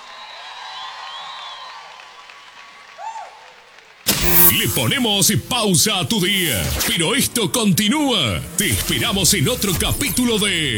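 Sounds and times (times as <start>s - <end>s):
audience applause: 0.0s - 4.1s
speech: 4.5s - 10.7s.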